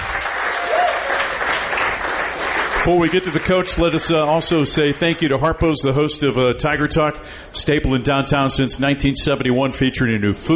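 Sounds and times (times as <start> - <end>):
crowd applauding Missouri football head coach after win over Texas A&M: 0.0 - 4.3
speech: 2.8 - 10.5.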